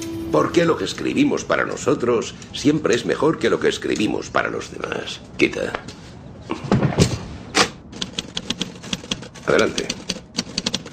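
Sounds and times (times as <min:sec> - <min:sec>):
speech: 0:00.3 - 0:06.0, 0:09.5 - 0:10.0
typewriter keys clacking: 0:08.0 - 0:10.9.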